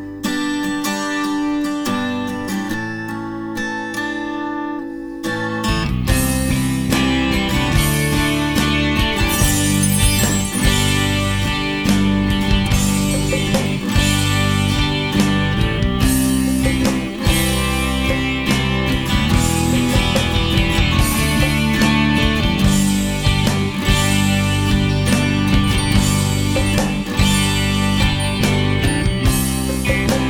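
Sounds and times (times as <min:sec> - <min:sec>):
ambient guitars: 0:00.0 - 0:30.2.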